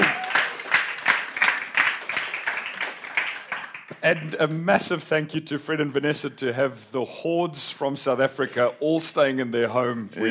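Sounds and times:
audience applause: 0.0 - 4.4
speech: 4.0 - 10.2.

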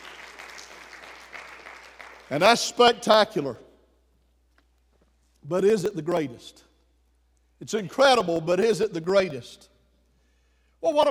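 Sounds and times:
audience applause: 0.0 - 2.3
speech: 2.3 - 3.6, 5.5 - 6.7, 7.6 - 9.7, 10.8 - 11.1.

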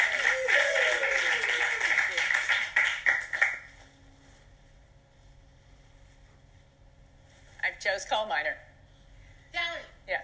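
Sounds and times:
audience applause: 0.0 - 3.7
speech: 8.0 - 8.7.

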